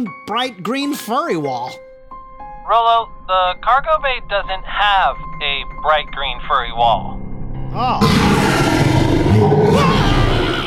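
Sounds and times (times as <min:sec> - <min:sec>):
speech: 0:00.0 - 0:01.8, 0:02.7 - 0:09.9
giant puppy growling: 0:07.7 - 0:10.6.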